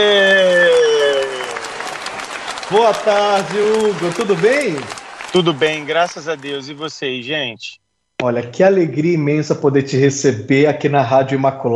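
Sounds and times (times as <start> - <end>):
applause: 0.0 - 7.4
speech: 2.7 - 11.7.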